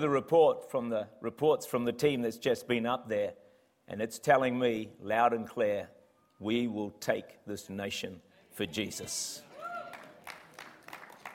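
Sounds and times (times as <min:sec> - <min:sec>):
speech: 0:00.0 - 0:09.4
a few hand claps from audience: 0:09.9 - 0:11.3.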